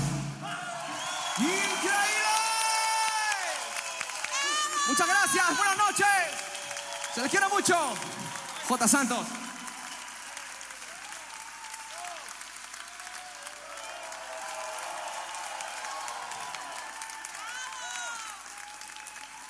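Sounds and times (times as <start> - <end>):
audience applause: 0.0 - 19.4
speech: 1.4 - 2.2, 4.9 - 6.6, 7.2 - 9.4.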